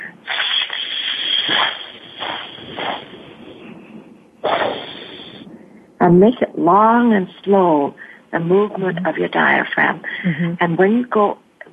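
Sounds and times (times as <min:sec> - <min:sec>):
breath hissing out through teeth: 0:00.2 - 0:03.2, 0:04.4 - 0:05.5
speech: 0:01.5 - 0:01.8, 0:06.1 - 0:11.4.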